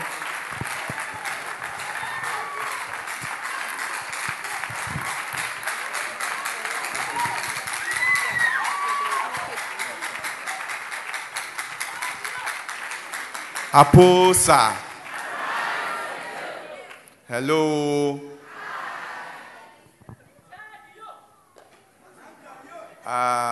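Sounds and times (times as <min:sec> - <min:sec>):
faint cheers and whistles: 0:00.0 - 0:03.8, 0:06.9 - 0:09.6
audience applause: 0:00.0 - 0:17.0
speech: 0:13.8 - 0:14.9, 0:17.3 - 0:18.3.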